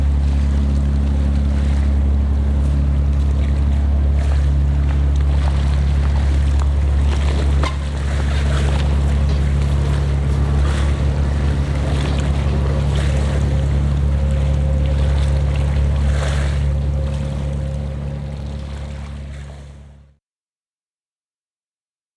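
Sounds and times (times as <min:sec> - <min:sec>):
vaporetto water bus at Zattere: 0:00.0 - 0:20.2.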